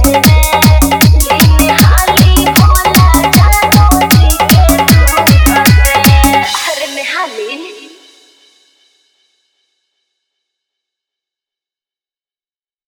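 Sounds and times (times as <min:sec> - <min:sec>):
dance mix with dholak and bass: 0:00.0 - 0:08.3.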